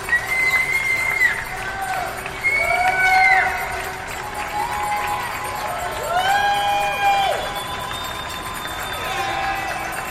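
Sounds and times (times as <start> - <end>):
whistle-like tones: 0.0 - 1.5, 7.2 - 9.6
New Yorkers cheering essential workers from windows: 0.0 - 10.0.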